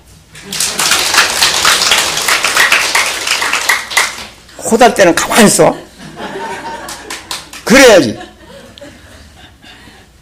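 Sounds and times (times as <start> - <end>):
speech: 0.4 - 0.9, 4.7 - 5.9, 7.7 - 8.3
audience clapping hands: 0.4 - 4.5, 6.5 - 8.1
laughter: 5.6 - 10.1.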